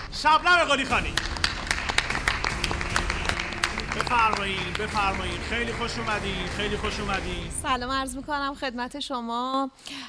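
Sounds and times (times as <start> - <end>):
speech: 0.2 - 1.3, 4.0 - 10.0
talk show studio audience clapping for a guest: 0.5 - 7.6.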